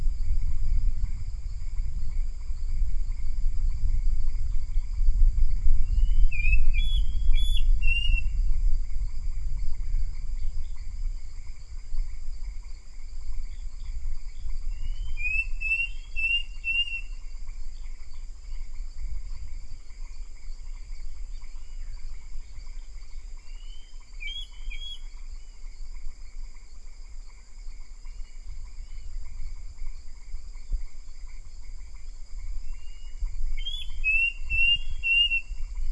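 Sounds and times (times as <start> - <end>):
low rumble: 0.0 - 14.8
bird chirping: 5.8 - 8.4, 13.4 - 35.9.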